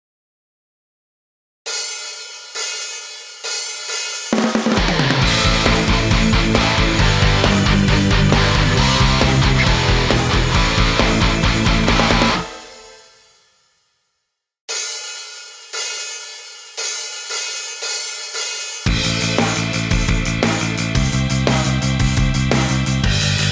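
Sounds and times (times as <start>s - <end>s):
karaoke singing: 4.7s - 12.6s, 18.9s - 23.4s.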